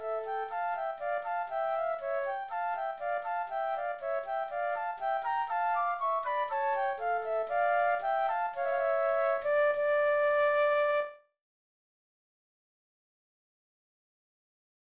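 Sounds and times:
classical gavotte flute duet: 0:00.0 - 0:11.3.

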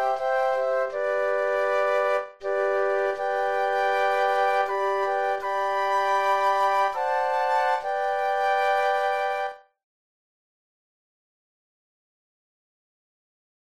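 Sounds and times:
flute quartet: 0:00.0 - 0:09.7.

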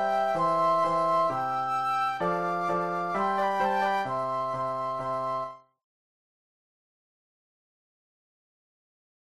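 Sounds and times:
andante classical flute duet: 0:00.0 - 0:05.8
classical piano: 0:00.0 - 0:05.8.

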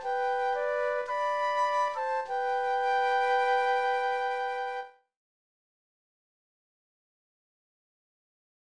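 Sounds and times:
flute duet: 0:00.0 - 0:05.1.

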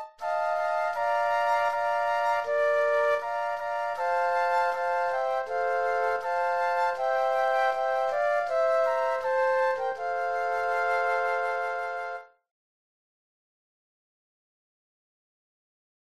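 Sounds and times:
flute trio playing: 0:00.0 - 0:12.4.

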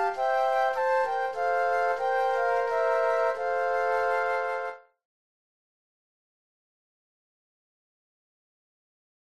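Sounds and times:
flute trio playing: 0:00.0 - 0:04.9.

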